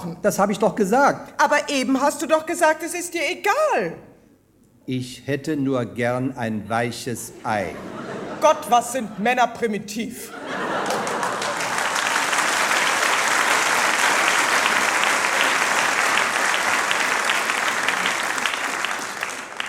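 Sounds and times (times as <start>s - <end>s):
speech: 0.0s - 4.1s, 4.8s - 10.7s
laughter: 6.6s - 9.3s, 10.2s - 19.4s
audience applause: 10.4s - 19.6s.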